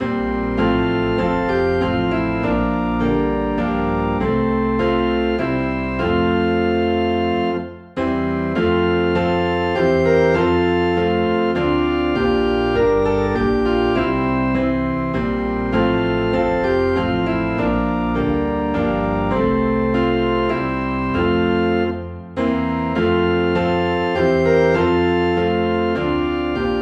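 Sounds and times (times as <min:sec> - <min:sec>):
organ in F: 0:00.0 - 0:26.8
piano in F: 0:00.0 - 0:26.8.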